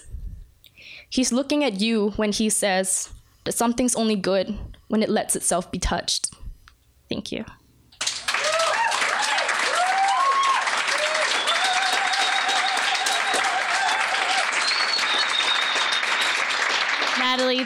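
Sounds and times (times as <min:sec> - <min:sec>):
speech: 0:01.0 - 0:06.3, 0:07.1 - 0:07.6
audience applause after a poem reading: 0:08.0 - 0:17.6
voices calling out and cheering: 0:08.3 - 0:17.3.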